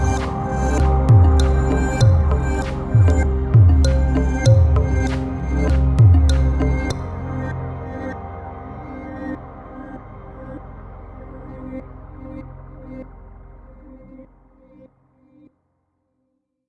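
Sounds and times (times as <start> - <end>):
urban percussion grooves: 0.0 - 7.1.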